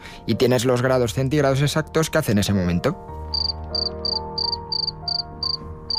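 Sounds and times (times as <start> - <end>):
speech: 0.3 - 3.2
cricket chirping: 3.3 - 5.9.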